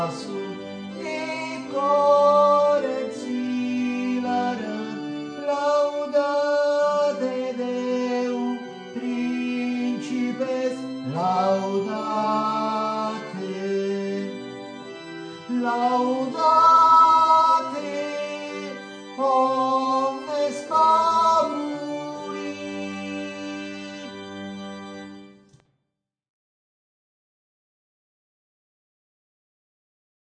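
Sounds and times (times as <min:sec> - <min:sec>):
tenor voices singing: 0:00.0 - 0:14.4, 0:15.5 - 0:24.2.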